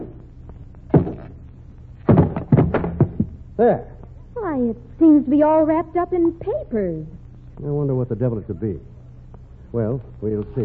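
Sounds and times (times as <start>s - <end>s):
hammer knocking on a wooden packing case lid: 0.9s - 1.3s, 2.1s - 3.4s
speech: 3.6s - 8.9s, 9.7s - 10.6s.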